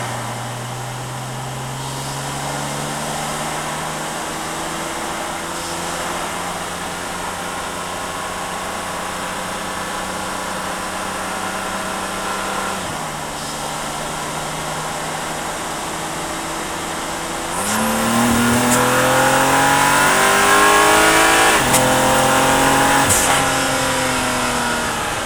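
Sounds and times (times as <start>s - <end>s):
car engine recorded onboard: 0.0s - 25.2s
car gearshifts while driving: 17.4s - 25.2s.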